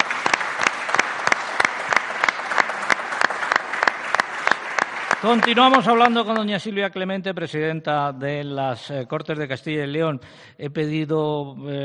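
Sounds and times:
applause: 0:00.0 - 0:06.7
speech: 0:05.2 - 0:11.8.

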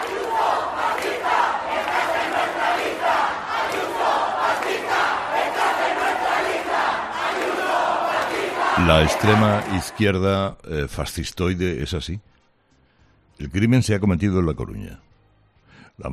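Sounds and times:
large protest crowd chanting a slogan in unison: 0:00.0 - 0:10.1
speech: 0:08.8 - 0:12.3, 0:13.4 - 0:15.1, 0:16.0 - 0:16.1.

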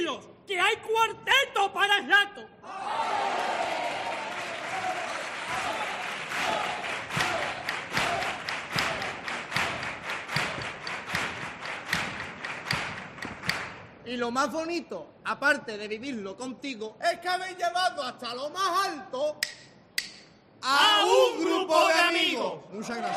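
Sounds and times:
speech: 0:00.2 - 0:03.1, 0:14.1 - 0:19.6, 0:20.6 - 0:23.1
theatre audience applause: 0:03.1 - 0:13.0
rhythmic clapping in unison: 0:04.1 - 0:14.0.

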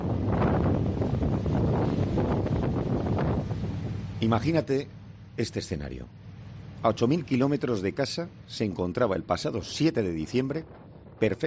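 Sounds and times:
wind roaring: 0:00.0 - 0:05.3, 0:08.4 - 0:11.4
rushing sea: 0:00.0 - 0:11.4
speech: 0:04.2 - 0:06.2, 0:06.8 - 0:11.4.

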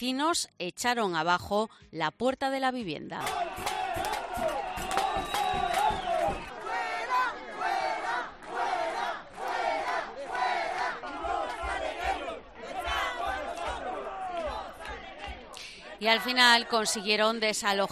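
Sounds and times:
speech: 0:00.0 - 0:04.6, 0:16.0 - 0:17.9
protest crowd shouting and chanting: 0:03.2 - 0:17.8.

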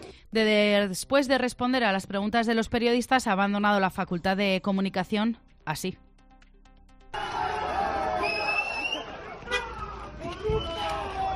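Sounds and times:
speech: 0:00.3 - 0:06.1
crowd booing minister Marlaska at the Facultad de Comunicación: 0:07.2 - 0:11.3.

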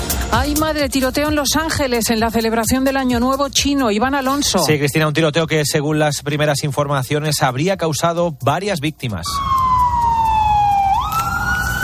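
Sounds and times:
speech: 0:00.3 - 0:09.6
police car sirens wailing: 0:09.2 - 0:11.8.

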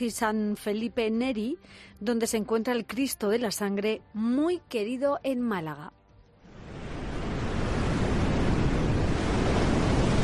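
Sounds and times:
speech: 0:00.0 - 0:06.0
wind over a stormy sea: 0:06.2 - 0:10.2
crashing surf of a stormy sea: 0:06.5 - 0:10.2.

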